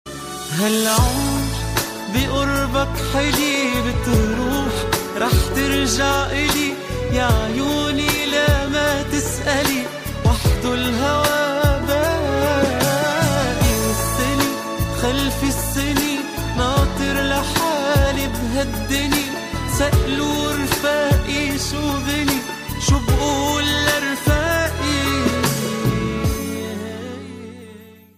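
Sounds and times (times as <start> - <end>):
Arab song: 0.3 - 28.1.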